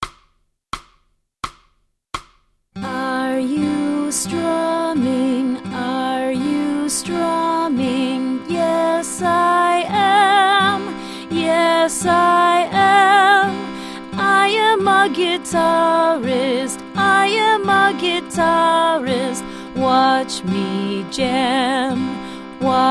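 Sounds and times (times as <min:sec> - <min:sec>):
guitar for kids: 0:02.8 - 0:22.8.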